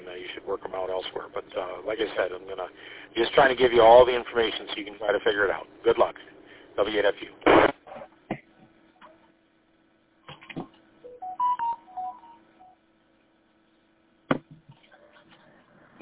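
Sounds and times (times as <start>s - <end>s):
low constant hum: 0.0s - 16.0s
speech: 0.5s - 7.7s
DTMF beeps from pound key pressed on a phone keypad: 11.1s - 12.8s.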